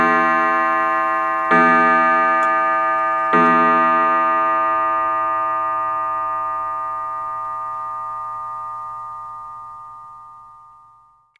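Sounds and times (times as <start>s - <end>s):
gong chime: 0.0s - 11.3s.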